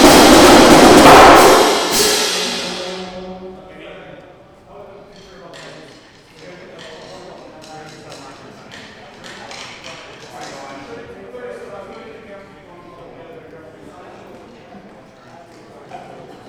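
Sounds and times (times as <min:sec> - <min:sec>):
drum intro: 0:00.0 - 0:03.5.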